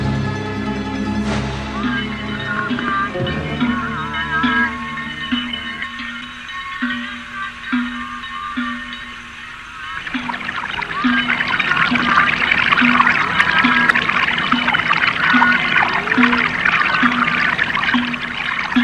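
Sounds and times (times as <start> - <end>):
soft low pulse: 0.1 - 18.8
water gushing and splashing from a spring: 9.7 - 18.8.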